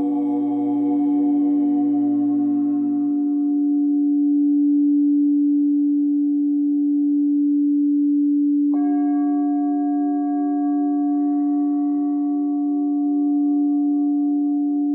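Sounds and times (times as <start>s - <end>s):
higher ringing layer: 0.0s - 5.2s
singing bowl ringing: 0.0s - 14.9s.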